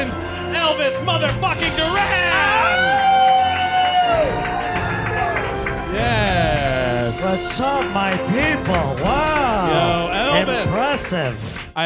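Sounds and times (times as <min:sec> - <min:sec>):
speech: 0:00.7 - 0:01.8, 0:07.3 - 0:11.8
crowd cheering: 0:01.3 - 0:11.4
round of applause: 0:02.6 - 0:11.8.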